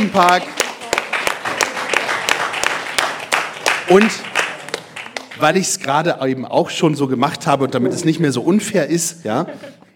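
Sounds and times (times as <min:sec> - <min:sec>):
speech: 0:00.0 - 0:00.6, 0:03.9 - 0:04.3, 0:05.4 - 0:09.9
audience clapping: 0:00.0 - 0:06.2.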